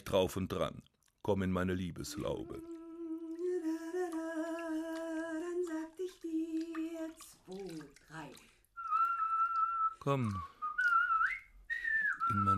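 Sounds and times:
speech: 0:00.0 - 0:02.7, 0:10.0 - 0:10.5
splashing in bathwater: 0:02.1 - 0:12.5
person whistling a medley: 0:08.8 - 0:12.5.

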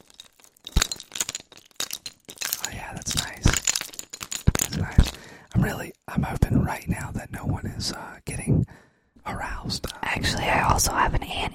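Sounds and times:
keys jingling: 0:00.0 - 0:05.6
speech: 0:04.8 - 0:11.5.

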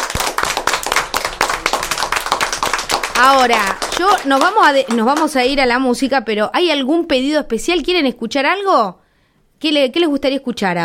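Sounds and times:
older adults applauding at a visit gathering: 0:00.0 - 0:05.3
speech: 0:03.2 - 0:09.0, 0:09.6 - 0:10.8.

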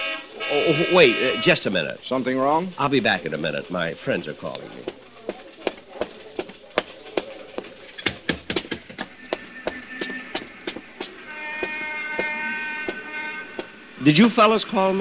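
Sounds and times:
horn honking: 0:00.0 - 0:02.0, 0:08.9 - 0:14.9
speech: 0:00.5 - 0:05.0, 0:14.0 - 0:14.9
clacks and knocks: 0:04.5 - 0:13.8.

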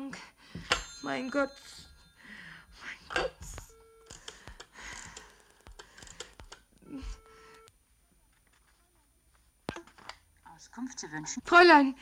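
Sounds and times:
speech: 0:01.0 - 0:01.8, 0:10.8 - 0:12.0
sharp clicks: 0:04.0 - 0:06.8
telephone dialing tones as someone calls the police: 0:07.1 - 0:07.7.

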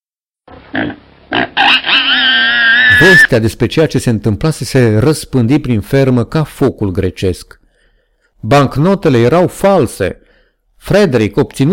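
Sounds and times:
speech: 0:00.7 - 0:01.0, 0:03.0 - 0:07.6, 0:08.4 - 0:10.2, 0:10.8 - 0:11.7
pig's strangled roar of fury: 0:00.7 - 0:03.3.

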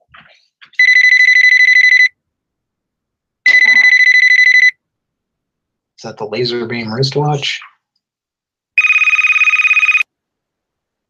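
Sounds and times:
telephone ringing tone on an outgoing call: 0:00.8 - 0:02.2, 0:03.5 - 0:04.8, 0:08.8 - 0:10.1
speech: 0:06.0 - 0:07.7.

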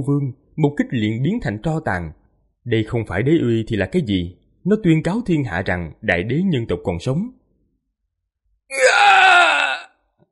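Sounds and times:
speech: 0:00.0 - 0:07.4, 0:08.7 - 0:09.2
agonized final scream: 0:08.7 - 0:10.0.

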